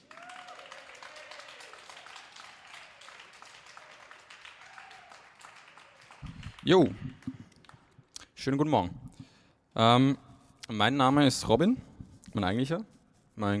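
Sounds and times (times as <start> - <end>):
people whooping: 0.0 - 7.2
audience applause at a university poetry slam: 0.0 - 7.9
speech: 6.6 - 7.1, 8.4 - 9.0, 9.8 - 13.5.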